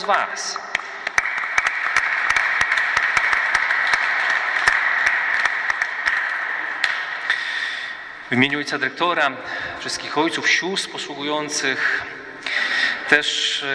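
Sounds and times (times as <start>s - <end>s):
speech: 0.0s - 0.7s, 8.3s - 13.7s
audience applause: 0.7s - 8.2s.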